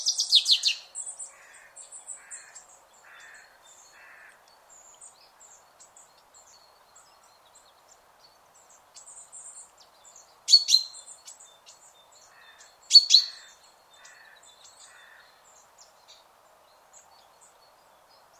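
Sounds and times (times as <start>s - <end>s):
common chaffinch Fringilla coelebs calls with descending trill and metallic notes: 0.0s - 16.2s.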